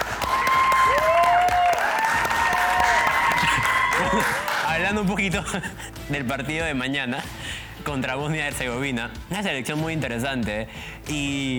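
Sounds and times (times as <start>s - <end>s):
audience applause: 0.0s - 5.1s
laughter: 2.0s - 7.4s
speech: 4.9s - 11.5s.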